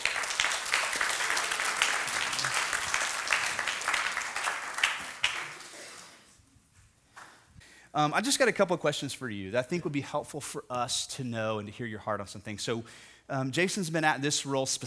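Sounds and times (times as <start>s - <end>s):
audience applause welcoming a speaker: 0.0s - 6.0s
speech: 8.0s - 14.8s.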